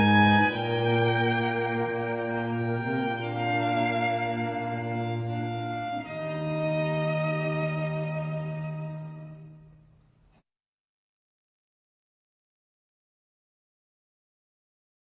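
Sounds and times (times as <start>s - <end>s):
string quartet: 0.0s - 9.8s.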